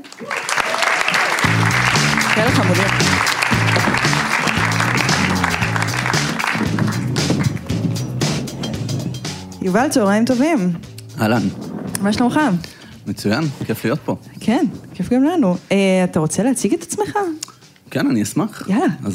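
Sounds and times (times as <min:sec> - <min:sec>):
live audience applause: 0:00.0 - 0:08.5
low musical tones: 0:01.4 - 0:18.6
speech: 0:02.4 - 0:03.4, 0:09.6 - 0:19.1.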